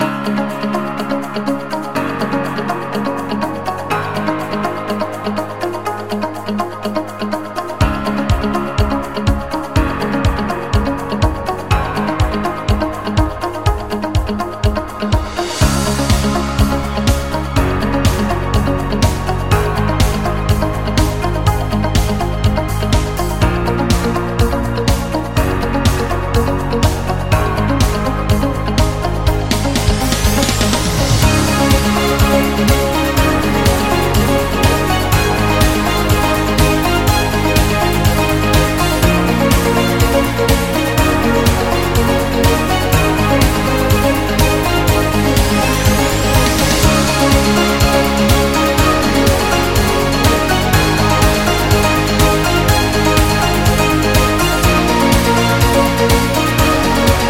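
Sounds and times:
upbeat corporate school music: 0:00.0 - 0:57.2.

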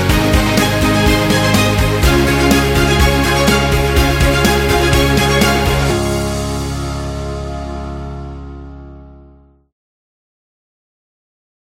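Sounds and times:
motivational rock music: 0:00.0 - 0:09.0.

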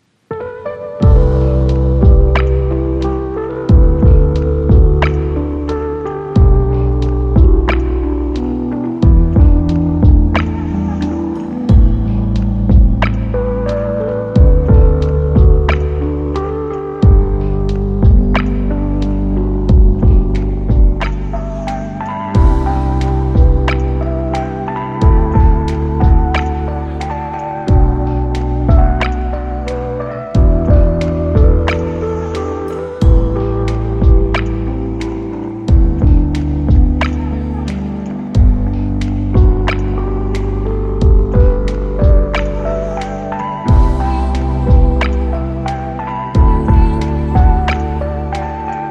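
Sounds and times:
mellow lofi jazz: 0:00.3 - 0:48.8.

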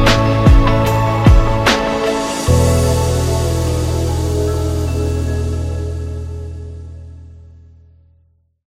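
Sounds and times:
luxury upbeat music: 0:00.0 - 0:06.9.

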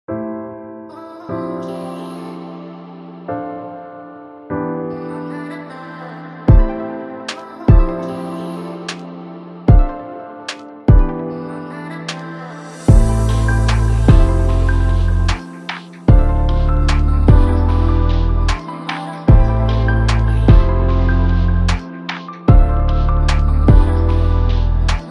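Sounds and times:
lo-fi chill beat: 0:09.7 - 0:11.2, 0:12.9 - 0:25.0.

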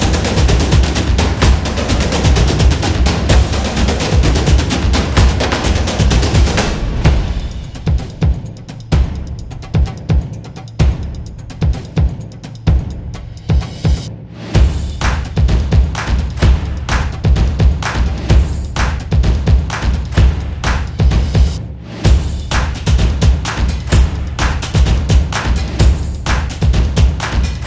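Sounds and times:
Sport drums percussion: 0:00.0 - 0:27.6.

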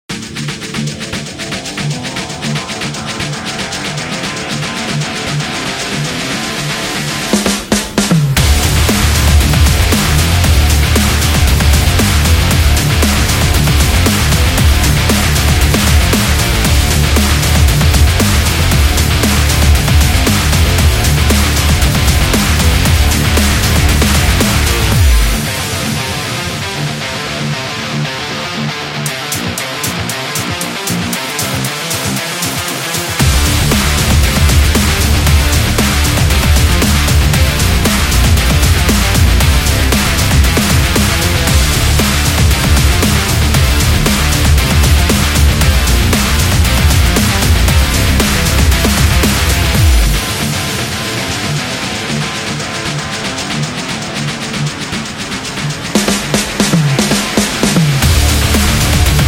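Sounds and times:
sport action rock music: 0:00.1 - 0:59.2.

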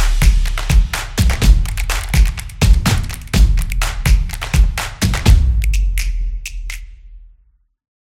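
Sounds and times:
drum solo: 0:00.0 - 0:06.0.

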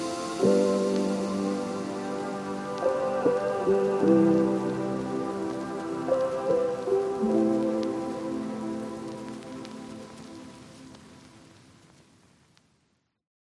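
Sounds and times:
chill beat: 0:00.0 - 0:09.8.

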